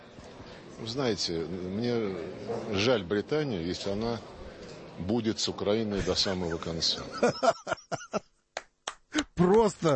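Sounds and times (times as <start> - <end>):
speech: 0.8 - 4.4, 5.0 - 7.6, 9.4 - 9.9
laughter: 5.9 - 8.3
hand clapping: 8.6 - 9.8.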